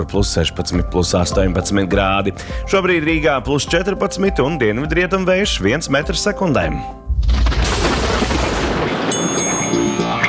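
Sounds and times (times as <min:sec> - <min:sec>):
speech: 0:00.0 - 0:07.0
thunder: 0:07.1 - 0:09.7.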